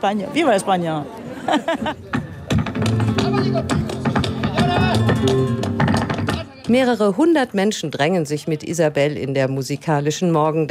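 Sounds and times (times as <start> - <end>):
speech: 0.0 - 2.2, 5.2 - 5.6, 6.7 - 10.6
laughter: 1.2 - 2.4
live flamenco guitar strummed and plucked: 1.9 - 7.2
sharp rhythmic taps: 2.1 - 6.9.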